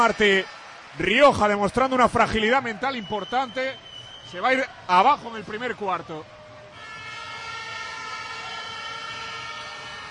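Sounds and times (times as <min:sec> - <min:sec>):
speech: 0:00.0 - 0:06.4
fans' air horns blaring in basketball arena: 0:06.7 - 0:10.0.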